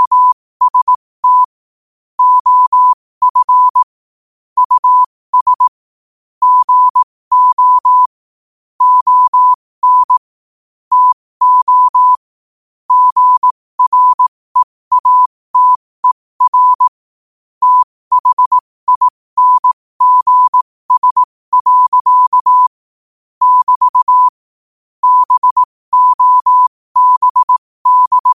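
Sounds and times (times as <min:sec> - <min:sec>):
morse code at 5 wpm: 0:00.0 - 0:01.5, 0:02.2 - 0:03.9, 0:04.6 - 0:05.7, 0:06.4 - 0:08.2, 0:08.8 - 0:10.3, 0:10.9 - 0:12.2, 0:12.9 - 0:17.0, 0:17.6 - 0:22.8, 0:23.4 - 0:24.4, 0:25.0 - 0:28.3.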